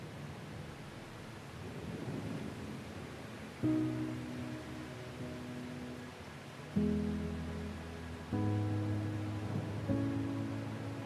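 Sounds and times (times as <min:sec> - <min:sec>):
low thunder rumble: 0:00.0 - 0:04.3, 0:08.4 - 0:11.0
soft classical music with sustained piano-like chords: 0:00.0 - 0:11.0
steady rain hiss: 0:00.0 - 0:11.0.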